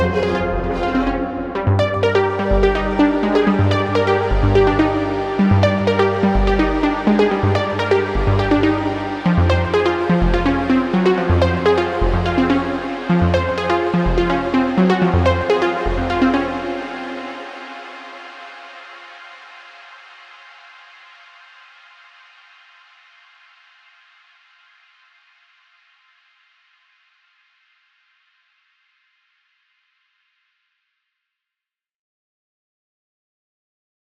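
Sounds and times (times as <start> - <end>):
trance synth: 0.0 - 20.0.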